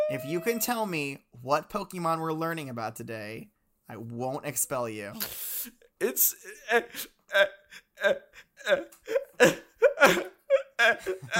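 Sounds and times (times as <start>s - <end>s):
man crying and sobbing hard: 0.0s - 0.9s, 5.2s - 11.3s
speech: 0.1s - 11.3s.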